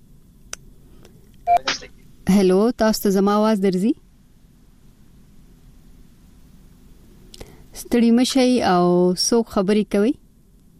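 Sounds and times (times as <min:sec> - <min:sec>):
telephone line beep as a listener's call connects to a radio phone-in show: 0:01.5 - 0:01.8
speech: 0:02.3 - 0:04.0, 0:07.9 - 0:10.2.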